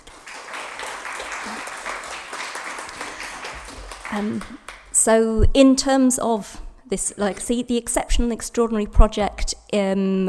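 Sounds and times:
crowd applauding: 0:00.0 - 0:05.0
speech: 0:04.1 - 0:10.2.

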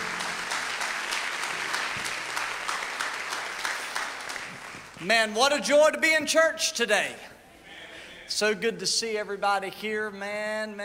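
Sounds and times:
audience applause: 0:00.0 - 0:05.0
speech: 0:05.0 - 0:07.3, 0:08.3 - 0:10.8.

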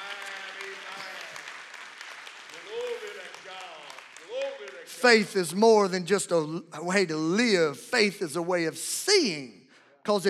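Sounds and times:
audience clapping hands: 0:00.0 - 0:06.4
speech: 0:04.8 - 0:10.2.

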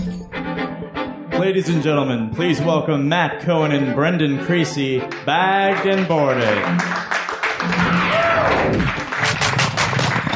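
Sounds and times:
speech: 0:01.4 - 0:07.0
audience applause: 0:05.1 - 0:10.3.

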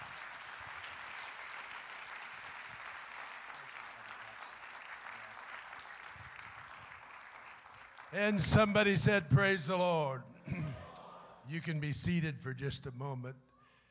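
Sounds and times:
audience applause: 0:00.0 - 0:08.7
speech: 0:08.1 - 0:10.3, 0:11.5 - 0:13.5.

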